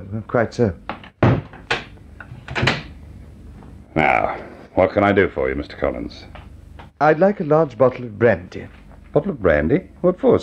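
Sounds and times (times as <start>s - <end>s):
speech: 0.1s - 0.8s, 4.8s - 6.4s, 7.0s - 10.4s
bar door being shut: 1.0s - 1.9s, 2.5s - 2.9s.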